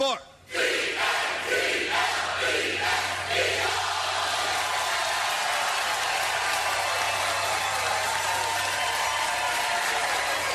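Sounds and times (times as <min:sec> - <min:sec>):
stadium crowd cheering and chanting: 0:00.5 - 0:10.5.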